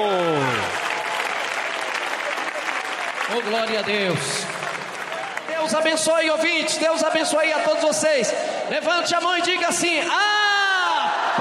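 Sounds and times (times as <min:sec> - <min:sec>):
audience applause: 0:00.0 - 0:06.8
speech: 0:03.3 - 0:04.6, 0:05.6 - 0:10.4.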